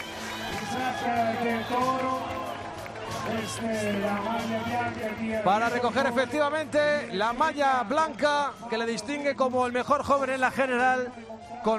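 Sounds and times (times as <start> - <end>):
crowd ovation for a cyclist: 0.0 - 9.0
speech: 1.4 - 2.2, 3.3 - 11.7.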